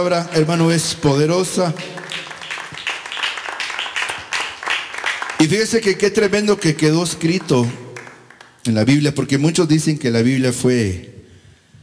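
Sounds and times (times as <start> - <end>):
speech: 0.0 - 2.3, 5.4 - 7.8, 8.6 - 11.1
audience applauding: 0.2 - 8.6.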